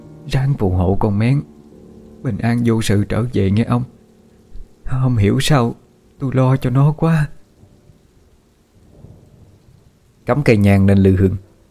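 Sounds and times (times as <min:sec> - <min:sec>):
heavy rain: 0:00.0 - 0:11.7
speech: 0:00.3 - 0:01.5, 0:02.2 - 0:04.0, 0:04.9 - 0:07.4, 0:10.3 - 0:11.5
thunder: 0:08.8 - 0:10.0.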